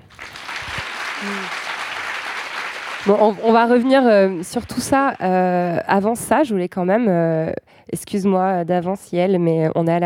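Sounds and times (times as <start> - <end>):
audience applauding: 0.0 - 5.8
speech: 1.2 - 1.6, 3.0 - 10.0.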